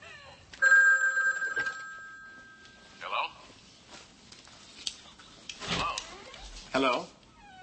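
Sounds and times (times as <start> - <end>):
telephone ringing: 0.6 - 3.0
speech: 6.8 - 7.1
dog whining: 7.3 - 7.6.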